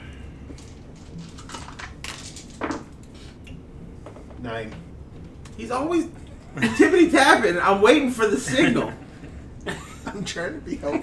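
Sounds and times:
dice rolling: 0:00.6 - 0:03.0
speech: 0:04.4 - 0:04.9, 0:05.6 - 0:09.0, 0:09.6 - 0:11.0
laughter: 0:06.5 - 0:07.3, 0:08.4 - 0:11.0.

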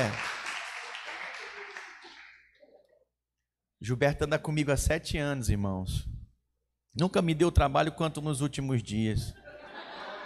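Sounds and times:
speech: 0:00.0 - 0:00.3, 0:03.8 - 0:06.1, 0:06.9 - 0:09.4
audience applauding: 0:00.0 - 0:02.6
laughter: 0:09.4 - 0:10.2.

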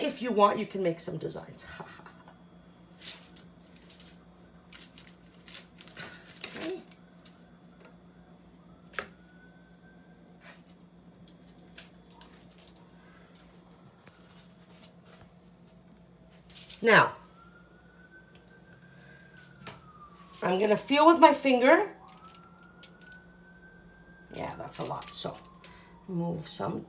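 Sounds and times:
speech: 0:00.0 - 0:02.0, 0:16.8 - 0:17.2, 0:20.4 - 0:22.0, 0:24.7 - 0:25.5, 0:26.1 - 0:26.8
steady low hum: 0:01.1 - 0:26.8
sugar falling onto tin foil: 0:02.9 - 0:07.6, 0:10.4 - 0:15.1, 0:16.3 - 0:17.6, 0:22.0 - 0:23.3, 0:24.2 - 0:25.9.

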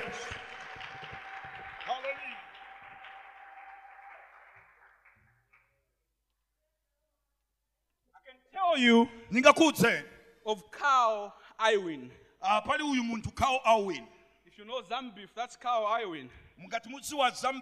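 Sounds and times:
audience hand clapping: 0:00.0 - 0:05.8
speech: 0:08.8 - 0:17.5.

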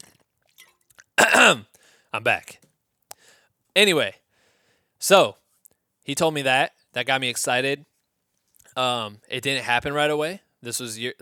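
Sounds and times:
person drinking water: 0:00.0 - 0:01.9
speech: 0:01.2 - 0:02.6, 0:03.8 - 0:04.2, 0:05.0 - 0:05.4, 0:06.1 - 0:07.9, 0:08.8 - 0:11.2
breathy gasp: 0:01.8 - 0:02.1, 0:04.3 - 0:04.9.

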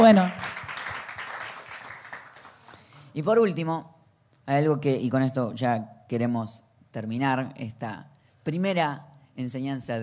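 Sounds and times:
speech: 0:00.0 - 0:00.5, 0:03.2 - 0:03.9, 0:04.5 - 0:10.0
audience applause: 0:00.0 - 0:02.8.

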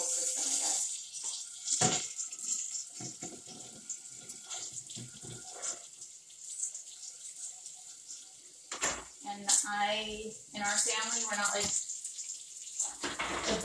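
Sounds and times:
running tap water: 0:00.0 - 0:13.6
dishes clattering while rinsed: 0:01.2 - 0:03.9, 0:08.7 - 0:09.2, 0:12.8 - 0:13.6
speech: 0:09.4 - 0:11.8, 0:13.5 - 0:13.6.

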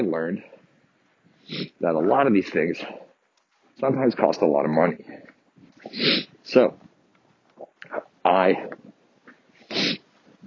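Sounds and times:
speech: 0:00.0 - 0:00.6, 0:01.5 - 0:03.0, 0:03.8 - 0:06.9, 0:07.8 - 0:08.8
sharp nasal sniffing in freezing cold air: 0:01.4 - 0:01.8, 0:05.8 - 0:06.4, 0:09.5 - 0:10.1.

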